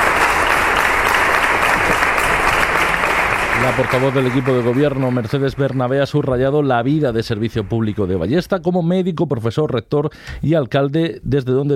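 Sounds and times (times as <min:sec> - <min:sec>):
council members applauding after a minute's silence: 0:00.0 - 0:08.6
speech: 0:03.6 - 0:11.7.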